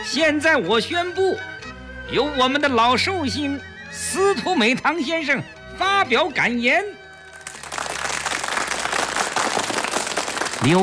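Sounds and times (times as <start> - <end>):
speech: 0.1 - 1.5, 2.1 - 7.0, 10.6 - 10.8
audience applause: 7.4 - 10.8.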